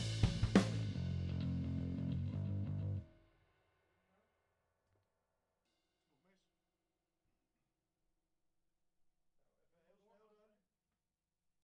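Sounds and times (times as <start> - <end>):
bass: 0.0 - 3.1
drums: 0.0 - 3.2.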